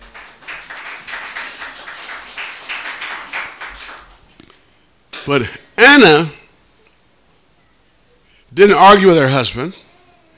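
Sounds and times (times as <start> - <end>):
audience hand clapping: 0.0 - 4.6
speech: 5.3 - 6.4, 8.6 - 9.8.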